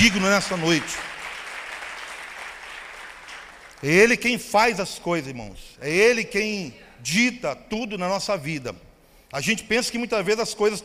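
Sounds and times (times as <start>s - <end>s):
speech: 0.0s - 1.1s, 3.8s - 10.8s
audience clapping: 0.0s - 4.2s.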